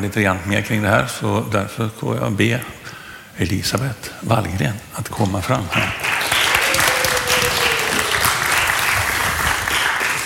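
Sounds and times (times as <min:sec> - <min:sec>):
speech: 0:00.0 - 0:06.0
sudden audience applause: 0:05.5 - 0:10.2.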